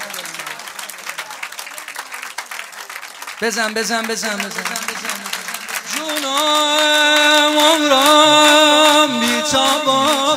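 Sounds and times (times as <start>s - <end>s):
applause at a gathering: 0.0s - 10.3s
speech: 3.4s - 10.3s.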